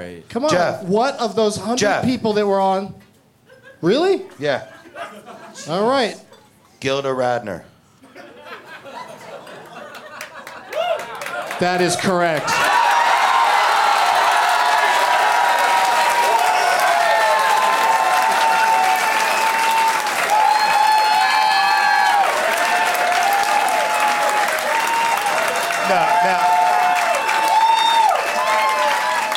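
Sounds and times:
speech: 0:00.0 - 0:03.0, 0:03.8 - 0:08.3, 0:11.6 - 0:12.8
laughter: 0:03.5 - 0:06.6, 0:08.0 - 0:12.7
audience clapping: 0:09.5 - 0:29.3
whoops and cheers: 0:10.7 - 0:11.2, 0:12.5 - 0:29.3.

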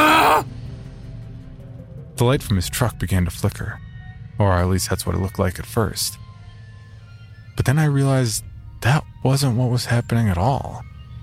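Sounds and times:
man screaming in pain: 0:00.0 - 0:00.5
speech: 0:02.2 - 0:06.2, 0:07.6 - 0:10.9.

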